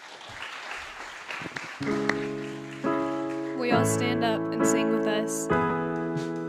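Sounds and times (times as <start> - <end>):
church audience applause for a youth worship band: 0.0 - 3.8
speech: 1.8 - 2.2, 3.7 - 6.3.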